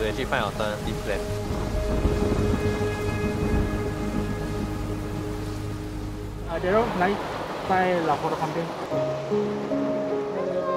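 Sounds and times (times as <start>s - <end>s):
steady rain pouring during an outdoor wedding shoot: 0.0s - 10.7s
speech: 0.1s - 3.0s, 6.5s - 9.9s.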